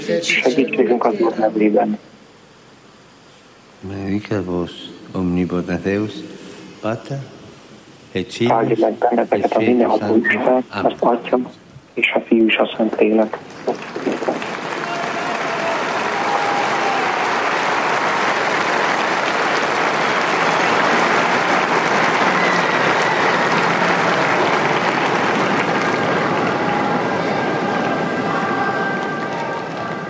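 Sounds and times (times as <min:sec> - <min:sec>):
speech: 0:00.0 - 0:02.2, 0:03.8 - 0:07.4, 0:08.1 - 0:14.4
crowd applauding the Pope after his catechesis: 0:13.4 - 0:30.0.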